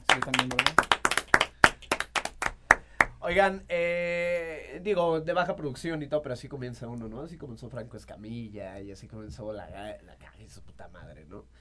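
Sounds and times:
small group clapping: 0.0s - 3.2s
speech: 0.2s - 0.8s, 3.2s - 11.5s.

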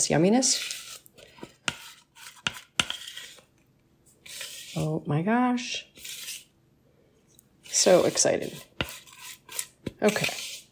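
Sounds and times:
speech: 0.0s - 0.8s, 4.8s - 6.0s, 7.8s - 8.7s, 10.0s - 10.7s
spatula scraping pie filling from a mixing bowl: 0.0s - 3.5s, 4.1s - 5.0s, 5.8s - 6.5s, 7.6s - 10.7s.

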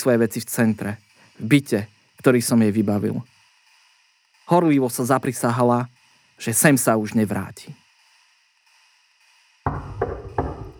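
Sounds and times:
speech: 0.0s - 3.3s, 4.5s - 7.8s
loud rhythmic kicks on a door: 9.7s - 10.7s.

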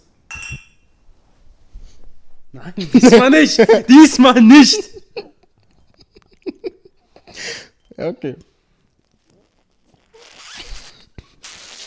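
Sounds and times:
glasses clinking in a toast: 0.3s - 1.0s
speech: 2.5s - 5.0s, 8.2s - 8.5s.

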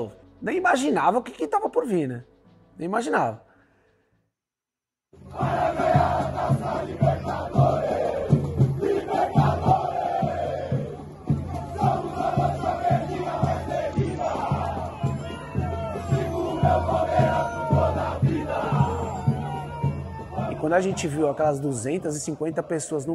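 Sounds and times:
speech: 0.0s - 3.5s, 20.6s - 23.1s
large crowd of fans shouting and cheering: 5.2s - 23.1s.

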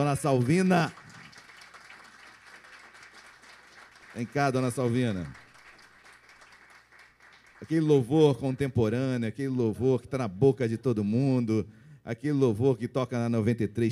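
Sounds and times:
speech: 0.0s - 1.0s, 4.2s - 5.4s, 7.6s - 13.8s
audience applause: 0.0s - 7.9s.

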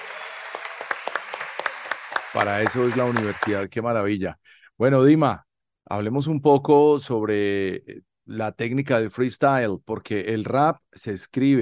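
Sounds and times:
audience applause: 0.0s - 3.7s
speech: 2.4s - 11.6s.

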